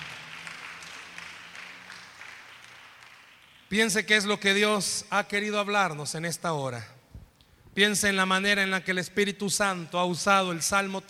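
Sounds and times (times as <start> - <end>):
audience applause: 0.0 - 3.7
speech: 3.7 - 7.0, 7.8 - 11.0.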